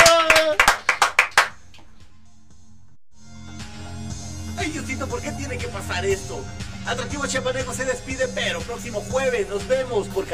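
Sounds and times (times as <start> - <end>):
quick sharp claps: 0.0 - 1.9
speech: 4.7 - 10.3.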